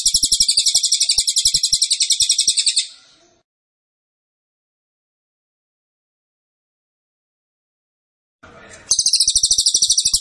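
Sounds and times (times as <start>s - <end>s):
pygmy bushtit song: 0.0s - 3.0s, 8.7s - 10.1s.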